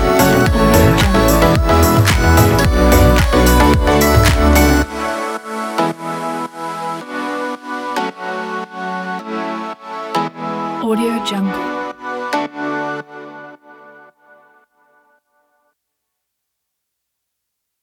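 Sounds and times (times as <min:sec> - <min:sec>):
tropical house music: 0:00.0 - 0:13.5.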